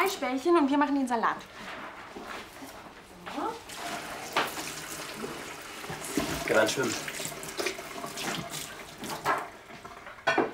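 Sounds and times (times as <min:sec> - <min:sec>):
speech: 0:00.0 - 0:02.4, 0:06.5 - 0:07.1
tap water running while lettuce is washed: 0:03.6 - 0:10.5.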